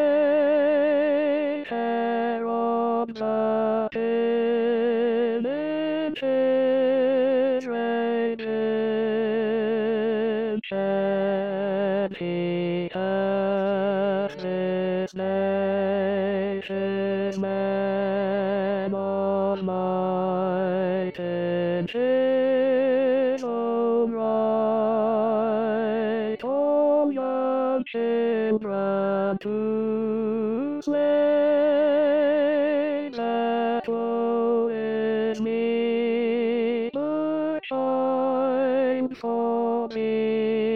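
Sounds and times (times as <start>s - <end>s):
tenor singing a carol: 0.0s - 40.7s.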